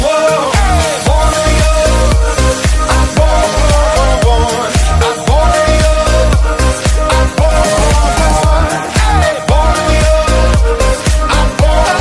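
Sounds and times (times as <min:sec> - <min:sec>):
hot electro ringtone: 0:00.5 - 0:11.9.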